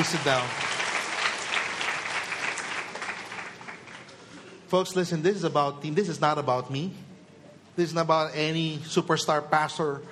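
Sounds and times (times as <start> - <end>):
speech: 0.0 - 0.6, 4.7 - 7.0, 7.8 - 10.1
audience applause for volunteers: 0.0 - 4.1.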